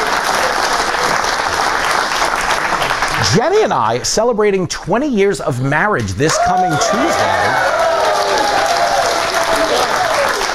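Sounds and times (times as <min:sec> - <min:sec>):
audience applause: 0:00.0 - 0:03.9, 0:06.3 - 0:10.5
speech: 0:03.3 - 0:07.6.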